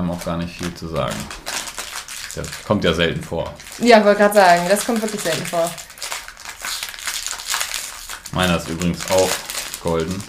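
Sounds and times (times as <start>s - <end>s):
speech: 0.0s - 1.5s, 2.4s - 5.9s, 8.4s - 10.2s
fortune cookie wrapper crinkling as unwrapped: 0.0s - 10.2s.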